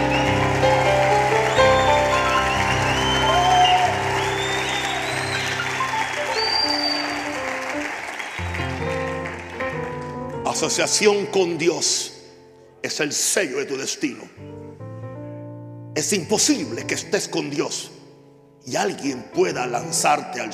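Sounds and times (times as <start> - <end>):
applause: 0.0 - 10.9
speech: 10.6 - 12.1, 12.8 - 14.5, 16.0 - 18.0, 18.6 - 20.5.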